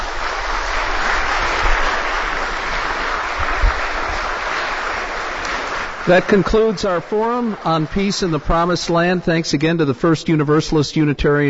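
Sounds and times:
audience applause for panelists: 0.0 - 9.6
speech: 6.1 - 11.4.

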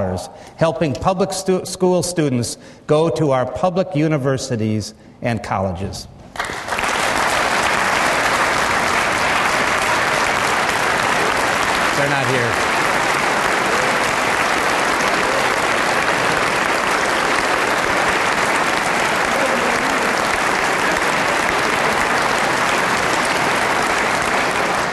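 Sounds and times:
speech: 0.0 - 6.5, 12.0 - 12.7
large crowd standing and applauding: 6.4 - 24.9.

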